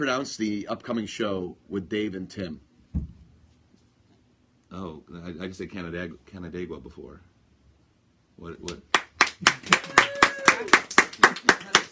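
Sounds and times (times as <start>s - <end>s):
speech: 0.0s - 2.7s, 4.8s - 7.3s, 8.4s - 9.8s
audience applause: 9.0s - 11.9s.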